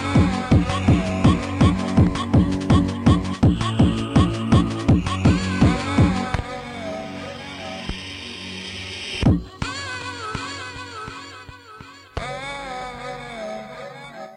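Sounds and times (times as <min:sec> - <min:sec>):
dissonant sampled techno: 0:00.0 - 0:11.4.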